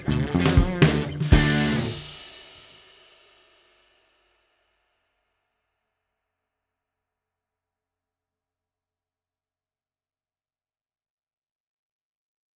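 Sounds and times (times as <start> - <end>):
backing track with lead: 0.0 - 2.4.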